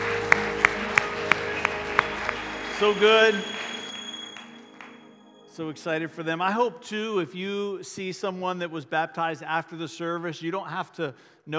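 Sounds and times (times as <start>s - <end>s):
audience applause: 0.0s - 5.1s
speech: 2.8s - 3.6s, 5.6s - 11.5s.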